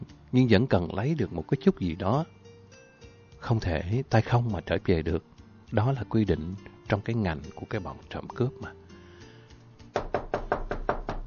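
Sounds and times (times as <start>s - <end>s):
speech: 0.3s - 2.4s, 3.4s - 8.8s
knocking on a door: 10.0s - 11.2s.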